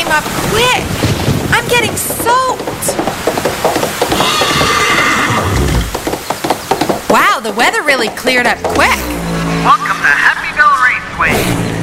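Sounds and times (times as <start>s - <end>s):
speech: 0.1s - 3.9s, 7.4s - 10.6s, 11.2s - 11.6s
hoof clops: 1.1s - 9.5s
horse whinnying: 4.1s - 6.0s.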